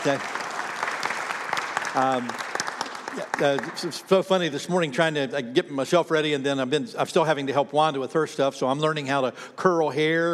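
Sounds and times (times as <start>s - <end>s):
speech: 0.0s - 0.4s, 2.0s - 2.5s, 3.1s - 10.3s
audience applause: 0.0s - 4.2s.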